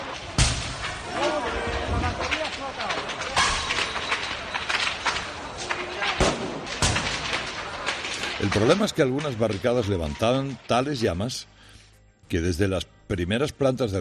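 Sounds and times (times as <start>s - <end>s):
crackling of exploding car batteries: 0.0s - 11.0s
speech: 8.4s - 11.6s, 12.3s - 14.0s.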